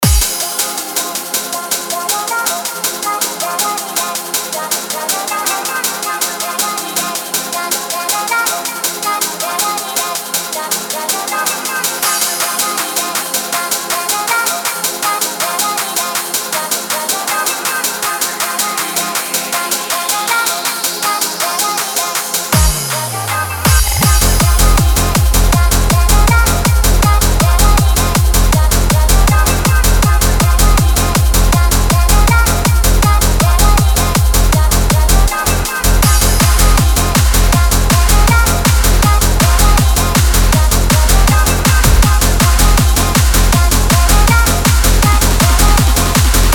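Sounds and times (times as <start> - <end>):
remix: 0.0 - 46.5.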